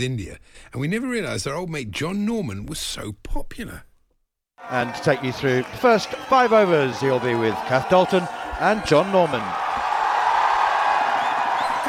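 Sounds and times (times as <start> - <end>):
speech: 0.0 - 3.9, 4.6 - 9.6
crowd cheering and applauding: 4.6 - 11.8.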